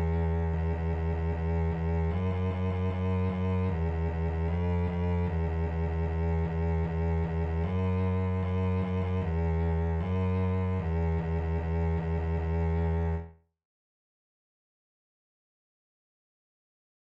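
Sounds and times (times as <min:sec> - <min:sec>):
bass E string notes: 0:00.0 - 0:13.4.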